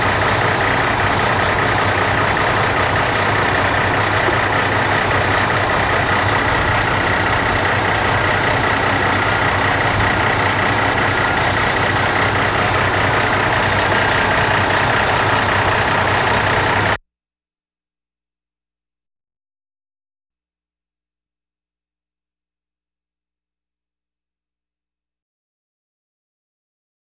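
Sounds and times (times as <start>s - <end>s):
machinery trucks moving: 0.0s - 17.0s.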